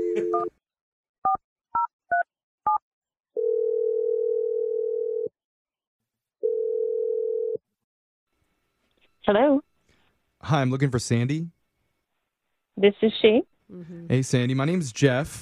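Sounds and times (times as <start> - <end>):
telephone dial tone: 0.0 - 0.5, 3.4 - 5.3, 6.4 - 7.6
speech: 0.2 - 0.6, 9.3 - 9.7, 10.4 - 11.6, 12.8 - 15.4
telephone ringing tones: 3.4 - 5.3, 6.4 - 7.6.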